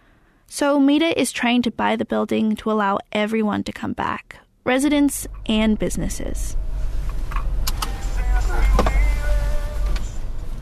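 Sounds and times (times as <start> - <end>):
speech: 0.5 - 6.6
car road rumble inside a car driven to Park Merced: 4.9 - 10.6.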